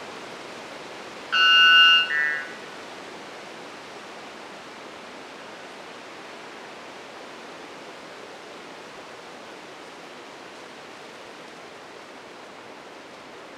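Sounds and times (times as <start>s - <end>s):
white bellbird calling: 1.3s - 2.6s.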